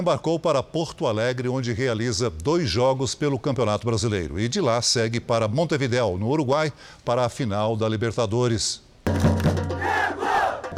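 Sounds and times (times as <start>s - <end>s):
speech: 0.0s - 9.6s
large crowd of Flamengo football fans roaring and chanting: 9.8s - 10.7s.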